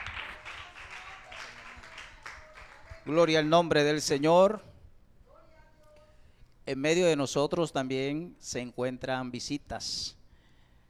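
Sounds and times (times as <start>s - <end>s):
audience applause: 0.0s - 3.1s
speech: 3.1s - 4.7s, 6.7s - 10.2s.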